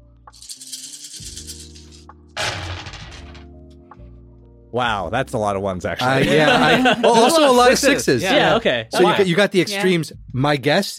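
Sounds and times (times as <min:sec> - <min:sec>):
rolling a handful of pilot dice: 0:00.3 - 0:03.4
speech: 0:04.7 - 0:10.9
laughter: 0:06.0 - 0:08.6.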